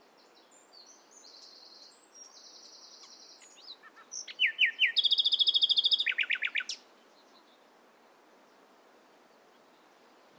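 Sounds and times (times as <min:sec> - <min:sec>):
common nightingale singing: 0:00.0 - 0:07.7.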